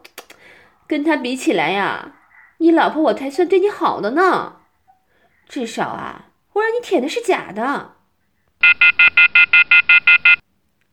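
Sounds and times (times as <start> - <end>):
speech: 0.9 - 4.6, 5.5 - 8.0, 8.6 - 10.2
electronic device alarm beeps: 8.6 - 10.4.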